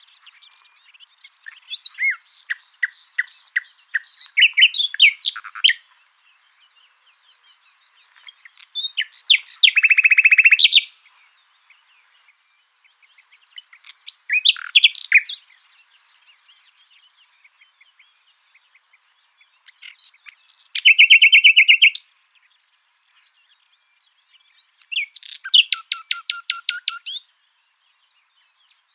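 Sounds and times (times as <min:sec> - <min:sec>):
Common nightingale Luscinia megarhynchos song: 0:00.0 - 0:28.9.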